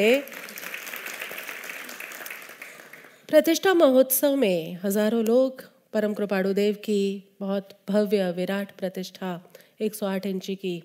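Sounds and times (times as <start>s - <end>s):
speech: 0.0s - 0.4s, 3.3s - 10.8s
crowd applauding: 0.0s - 3.3s.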